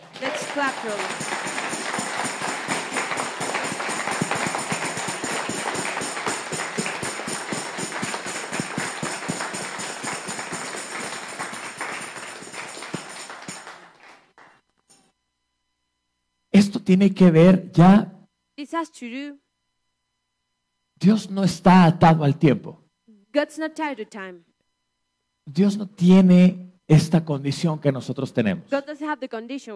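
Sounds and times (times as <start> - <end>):
audience applauding: 0.0 - 14.6
speech: 0.2 - 1.7, 16.9 - 18.1, 18.7 - 19.4, 21.0 - 24.5, 25.5 - 29.7.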